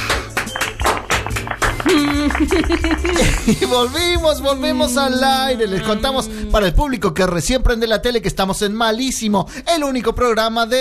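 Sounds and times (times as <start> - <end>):
studio audience applause: 0.0 - 4.1
laughter: 1.6 - 6.3
speech: 1.9 - 10.7.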